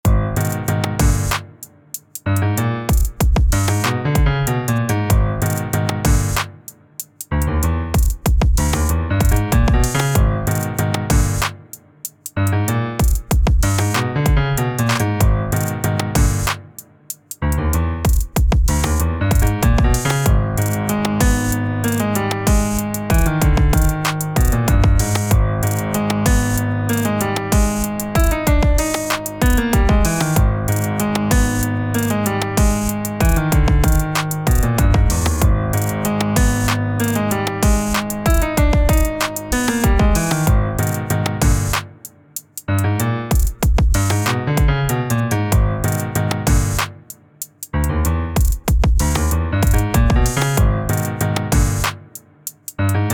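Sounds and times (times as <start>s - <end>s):
piano riff: 0.0s - 53.1s
trap drums: 0.1s - 53.0s.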